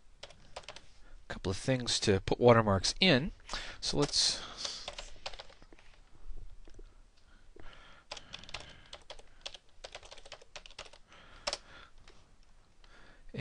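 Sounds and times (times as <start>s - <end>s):
typing on a computer keyboard while entering code: 0.2s - 0.9s, 4.0s - 5.6s, 8.1s - 11.7s
speech: 1.4s - 4.5s.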